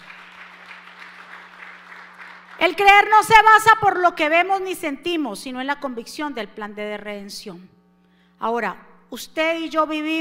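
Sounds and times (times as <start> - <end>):
audience applauding loudly: 0.0 - 2.9
low constant hum: 0.0 - 10.2
speech: 2.6 - 7.8, 8.4 - 10.2.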